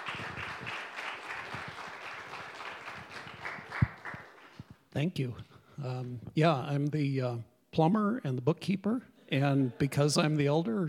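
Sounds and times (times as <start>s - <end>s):
audience clapping at a gathering: 0.0s - 4.9s
speech: 5.0s - 10.8s.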